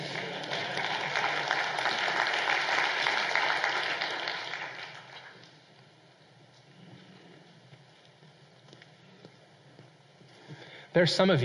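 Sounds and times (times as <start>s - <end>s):
audience applause: 0.0s - 5.6s
speech: 11.0s - 11.4s.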